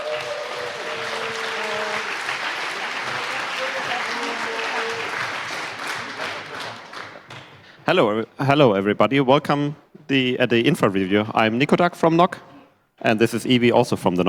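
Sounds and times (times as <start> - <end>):
audience applause: 0.0 - 7.6
speech: 7.9 - 14.2.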